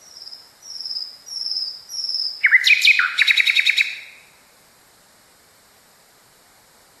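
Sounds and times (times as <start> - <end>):
Nightingale singing: 0.0 - 4.4.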